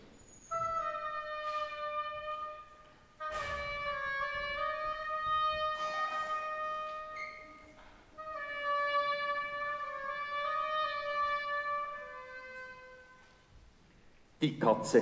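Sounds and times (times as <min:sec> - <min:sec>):
oboe playing a melody: 0:00.0 - 0:13.6
speech: 0:14.4 - 0:15.0.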